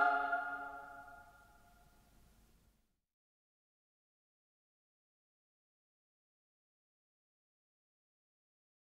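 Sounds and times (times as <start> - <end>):
song: 0.0 - 1.3.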